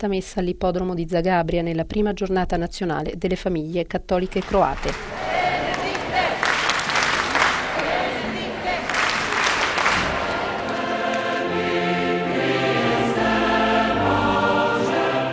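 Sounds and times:
speech: 0.0 - 5.2
steady tones: 4.3 - 15.3
large festive crowd applauding and cheering: 4.4 - 11.5
murmur of voices: 4.4 - 11.5.

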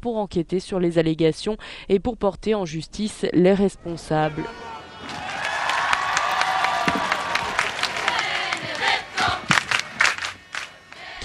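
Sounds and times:
speech: 0.0 - 5.2
crowd of young Maltese people cheering to welcome Pope Benedict XVI: 3.9 - 11.2
sharp claps: 5.0 - 11.0.

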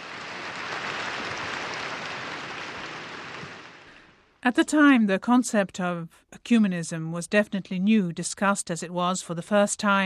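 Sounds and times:
applause after decree passed: 0.0 - 4.4
speech: 4.4 - 10.0.

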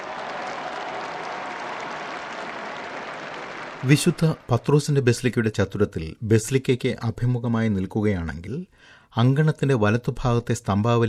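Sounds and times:
crowds in St. Peter's Square applauding as the Pope appears at the palace window: 0.0 - 5.0
speech: 3.8 - 11.0.

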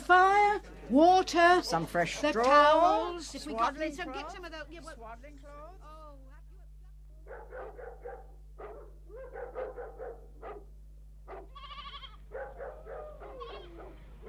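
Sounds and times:
low steady hum: 0.0 - 14.2
speech: 0.9 - 6.0
sheep bleating: 11.4 - 12.3, 13.1 - 14.2.

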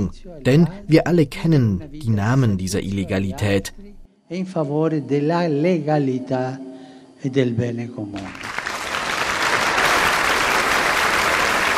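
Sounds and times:
speech: 0.0 - 8.6
people applauding: 8.2 - 11.7.

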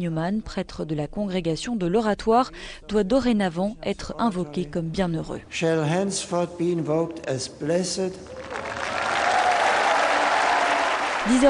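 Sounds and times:
speech: 0.0 - 8.8, 11.2 - 11.4
enthusiastic crowd applauding outdoors in the rain: 8.1 - 11.4.

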